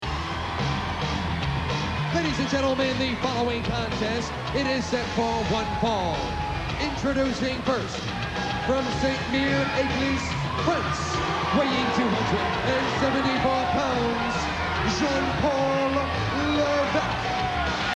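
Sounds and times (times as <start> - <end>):
music: 0.0 - 17.9.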